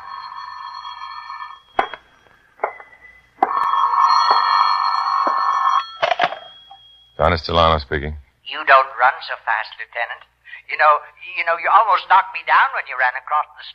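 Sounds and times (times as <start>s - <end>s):
telephone ringing: 0.0s - 7.2s
speech: 7.2s - 13.7s.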